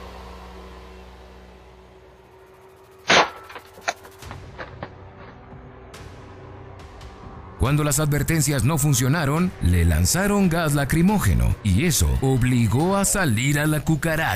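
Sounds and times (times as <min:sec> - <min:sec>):
gunshots fired at police devices: 0:03.1 - 0:05.0
speech: 0:07.6 - 0:14.3.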